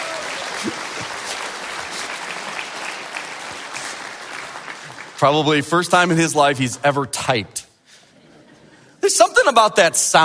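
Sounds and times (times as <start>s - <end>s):
audience applause: 0.0s - 5.6s
speech: 0.6s - 0.8s, 5.2s - 7.6s, 9.5s - 10.2s.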